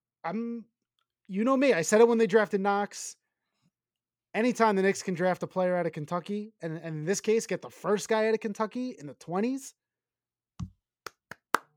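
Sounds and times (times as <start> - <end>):
speech: 0.2 - 3.2, 4.4 - 9.8
small light hand clap: 10.6 - 11.7.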